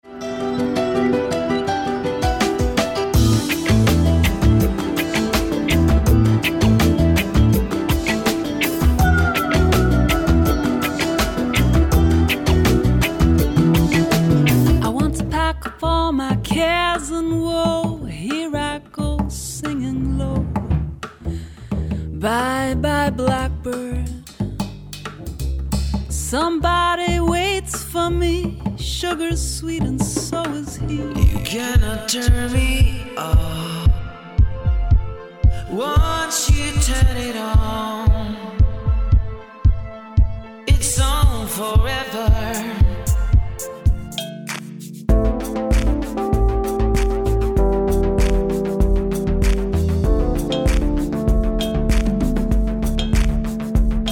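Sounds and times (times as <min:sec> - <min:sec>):
lounge music: 0:00.0 - 0:54.1.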